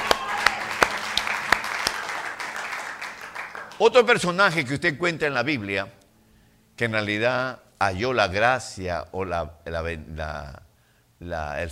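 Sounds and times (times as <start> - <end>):
audience applause: 0.0 - 4.1
speech: 3.8 - 6.0, 6.8 - 10.6, 11.2 - 11.7.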